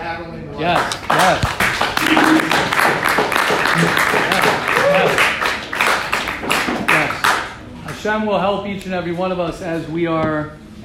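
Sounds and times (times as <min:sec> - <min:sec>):
speech: 0:00.2 - 0:01.6, 0:08.0 - 0:10.8
crowd applauding: 0:00.8 - 0:07.6.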